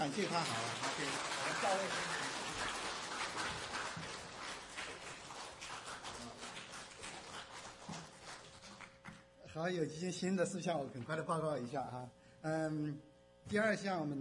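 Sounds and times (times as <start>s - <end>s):
speech: 0.0s - 2.3s, 9.5s - 14.1s
audience applause: 0.0s - 9.0s.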